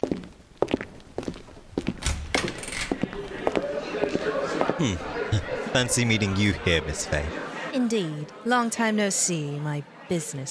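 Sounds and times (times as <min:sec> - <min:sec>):
footsteps of a couple walking into a bar in a radio drama: 0:00.0 - 0:04.8
laughter: 0:03.1 - 0:08.5
speech: 0:04.8 - 0:10.4.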